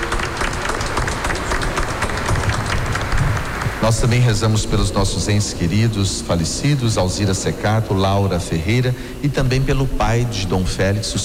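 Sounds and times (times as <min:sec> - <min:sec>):
audience applauding: 0:00.0 - 0:05.8
speech: 0:03.8 - 0:11.2.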